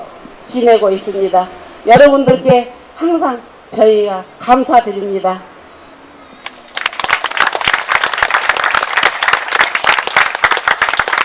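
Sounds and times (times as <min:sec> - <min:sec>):
speech: 0:00.5 - 0:05.5
audience applause: 0:06.7 - 0:11.2.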